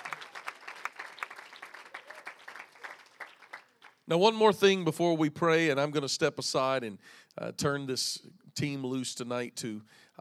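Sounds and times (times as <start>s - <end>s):
audience applause for students: 0.0s - 4.0s
speech: 4.1s - 10.2s.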